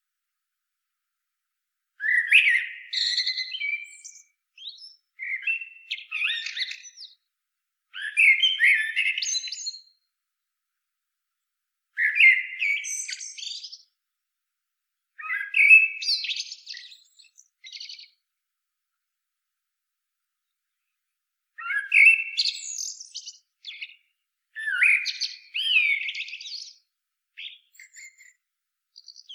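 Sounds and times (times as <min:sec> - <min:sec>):
common blackbird singing: 0:02.0 - 0:07.2, 0:08.0 - 0:10.0, 0:12.0 - 0:13.9, 0:15.2 - 0:18.2, 0:21.6 - 0:28.4, 0:29.0 - 0:29.3.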